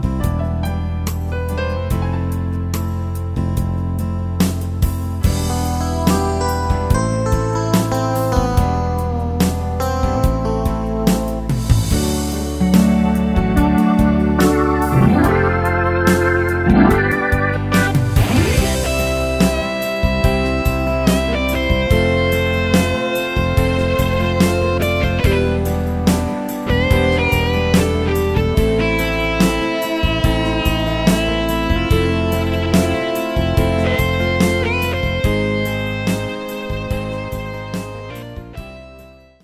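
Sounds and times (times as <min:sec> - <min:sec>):
rock ballad: 0:00.0 - 0:39.0.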